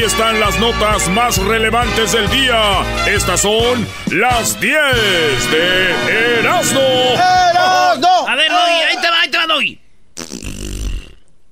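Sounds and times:
speech: 0.0s - 10.3s
fart: 10.2s - 11.3s.

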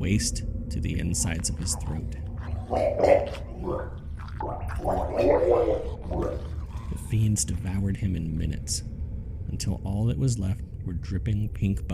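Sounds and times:
speech: 0.0s - 11.9s
wet bubbling gargling: 2.4s - 7.3s.

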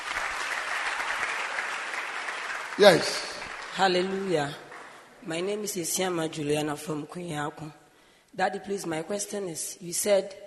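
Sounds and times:
audience applause: 0.0s - 5.1s
speech: 2.8s - 4.6s, 5.2s - 7.8s, 8.4s - 10.4s.

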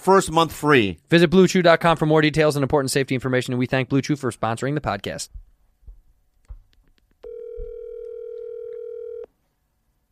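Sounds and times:
speech: 0.0s - 5.4s
soft low thumps: 5.3s - 6.7s
phone ringback tone: 7.2s - 9.3s.

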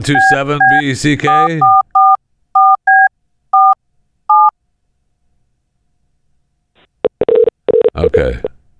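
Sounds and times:
speech: 0.0s - 1.8s, 8.1s - 8.5s
telephone keypad two-tone dialing beeps: 0.1s - 4.5s.

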